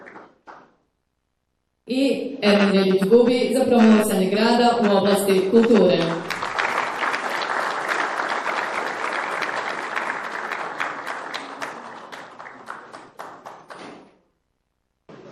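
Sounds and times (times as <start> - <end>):
audience applause at a city awards ceremony for culture: 0.0 - 0.8, 5.6 - 14.2
speech: 1.9 - 6.2.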